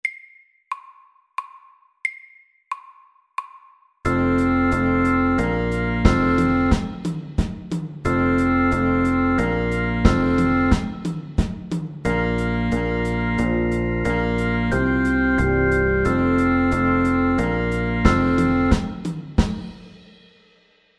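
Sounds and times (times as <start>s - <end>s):
fusion music: 4.1s - 19.7s.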